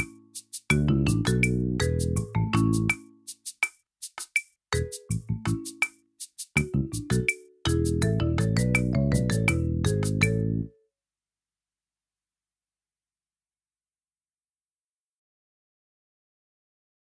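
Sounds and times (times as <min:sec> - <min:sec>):
backing drums: 0:00.0 - 0:10.4.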